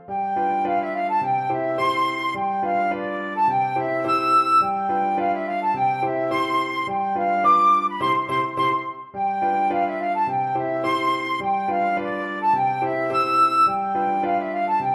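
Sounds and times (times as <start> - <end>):
flute playing a schottische dance tune: 0.1 - 14.9.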